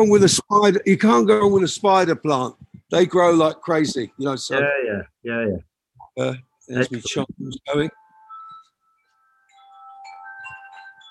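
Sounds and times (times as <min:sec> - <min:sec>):
speech: 0:00.0 - 0:08.0
chimes ringing: 0:07.7 - 0:11.0.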